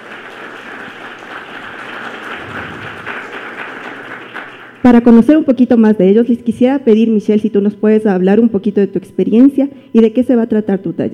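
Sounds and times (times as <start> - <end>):
audience applause: 0.0 - 4.8
speech: 4.9 - 11.1.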